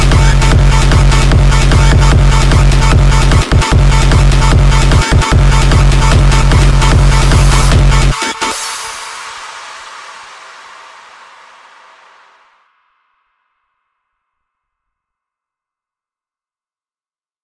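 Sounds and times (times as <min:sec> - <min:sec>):
hardstyle remix: 0:00.0 - 0:12.7.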